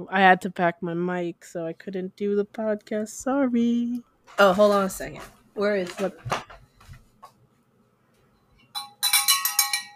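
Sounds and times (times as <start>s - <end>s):
speech: 0.0s - 6.5s
signal or alarm bell ringing: 8.7s - 9.9s.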